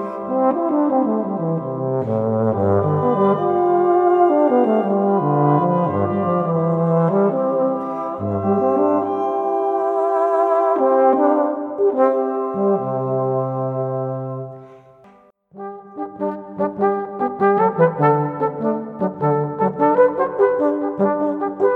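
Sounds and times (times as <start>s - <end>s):
brass quartet playing: 0.0s - 14.8s, 15.6s - 21.7s.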